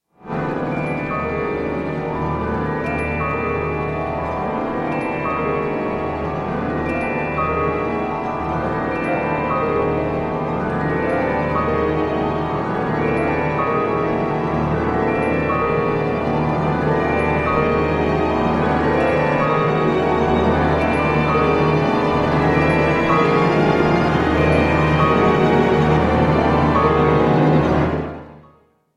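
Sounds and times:
symphony orchestra strings and percussion: 0.3 - 28.4.

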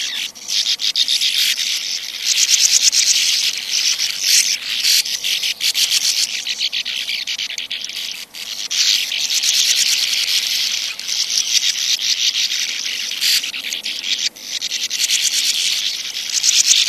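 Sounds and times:
sand martin uttering rough buzzy twittering calls: 0.0 - 16.8.

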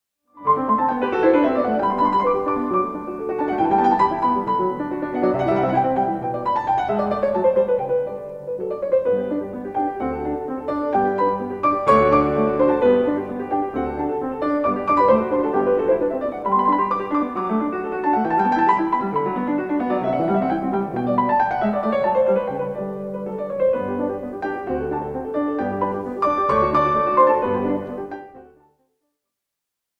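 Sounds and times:
sonata movement for two pianos in D major, allegro molto: 0.4 - 28.7.

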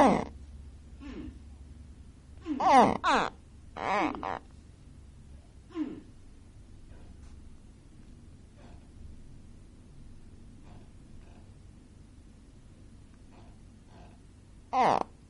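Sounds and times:
gharial calls: 2.6 - 4.5.

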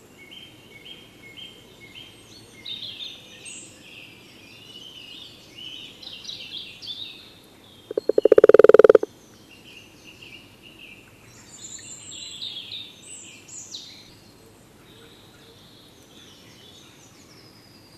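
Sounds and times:
common toad giving a rattling trill: 7.9 - 9.1.

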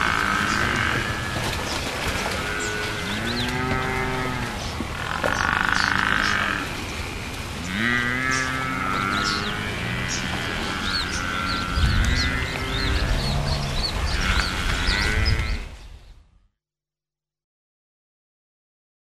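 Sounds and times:
African buffalo giving deep short grunting moos: 0.0 - 6.8, 7.6 - 15.7.

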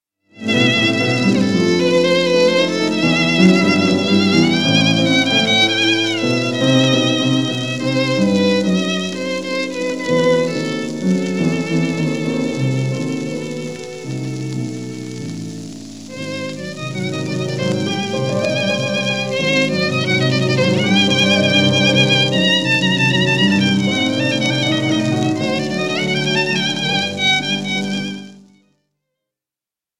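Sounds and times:
violin playing a melody: 0.3 - 28.6.

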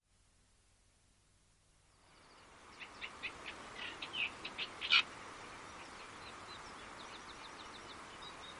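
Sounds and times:
Eurasian reed warbler song with dry repeated chattering notes: 2.0 - 8.5.

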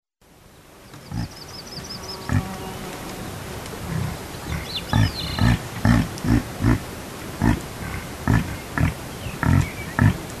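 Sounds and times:
reindeer grunting and clicking: 3.8 - 10.3.

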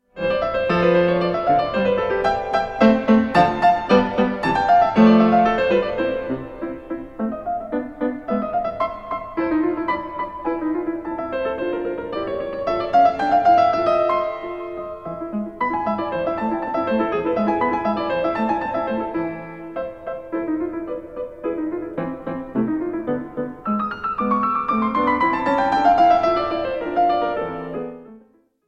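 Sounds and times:
piano sonata in C major rondo: 0.0 - 28.6.

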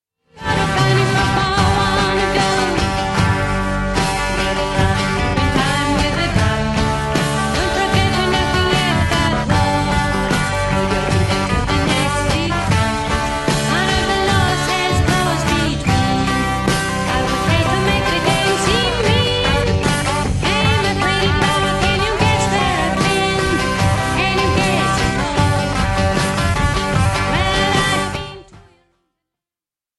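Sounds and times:
drum: 0.4 - 28.5.

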